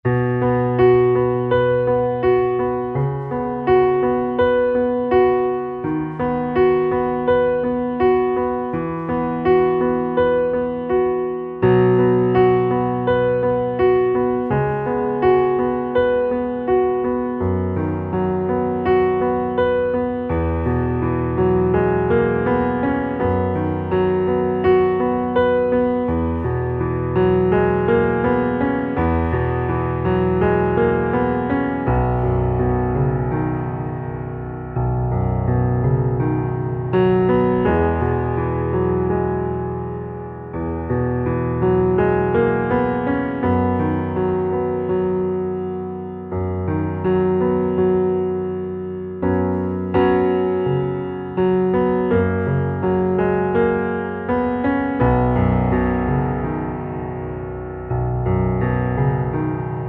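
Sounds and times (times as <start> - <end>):
piano underscore: 0.0 - 59.8.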